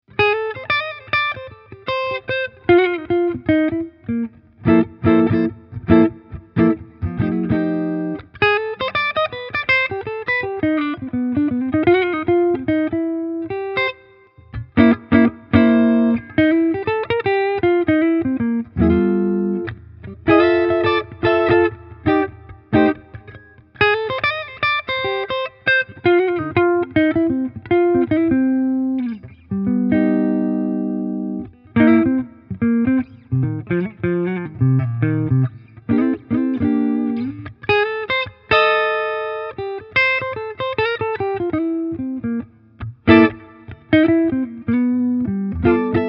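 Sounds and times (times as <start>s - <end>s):
Harley Benton SC Custom III neck pickup clean bluesy electric guitar: 0.1s - 46.0s.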